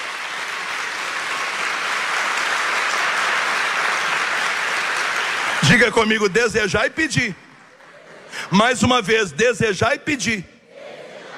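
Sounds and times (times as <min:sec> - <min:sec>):
crowd applauding: 0:00.0 - 0:08.6
speech: 0:05.7 - 0:07.5, 0:08.5 - 0:10.5.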